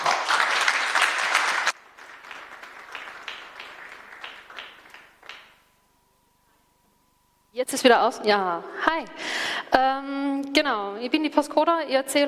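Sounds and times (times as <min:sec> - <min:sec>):
audience applause: 0:00.0 - 0:05.6
speech: 0:07.6 - 0:12.2.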